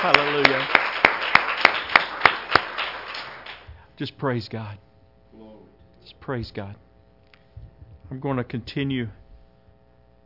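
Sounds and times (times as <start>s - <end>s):
speech: 0.0s - 0.8s, 4.0s - 4.9s, 6.0s - 6.8s, 8.1s - 9.2s
church congregation clapping in praise during worship: 0.0s - 3.7s.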